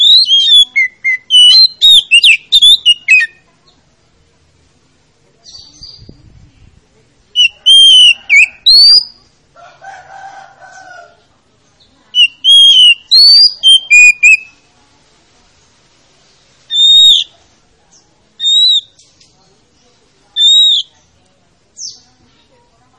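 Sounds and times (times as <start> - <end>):
Oriental magpie-robin singing: 0.0 - 3.8, 7.4 - 9.3, 12.1 - 14.6, 16.7 - 17.3, 17.9 - 21.2.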